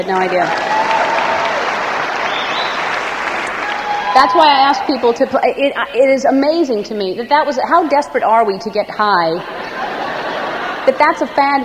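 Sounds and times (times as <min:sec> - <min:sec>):
speech: 0:00.0 - 0:00.7, 0:04.2 - 0:09.9, 0:10.9 - 0:11.6
audience applause: 0:00.2 - 0:05.2
laughter: 0:09.4 - 0:11.6.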